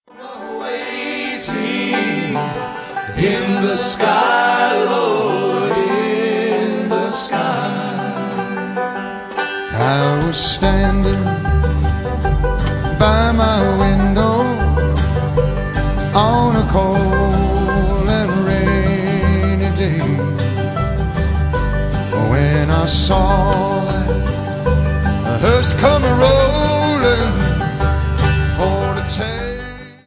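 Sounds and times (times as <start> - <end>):
bluegrass medley: 0.1 - 30.0.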